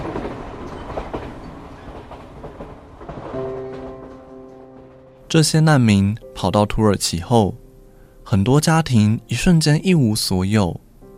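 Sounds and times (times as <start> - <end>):
train riding on rails: 0.0 - 6.1
speech: 5.3 - 7.6, 8.3 - 10.8.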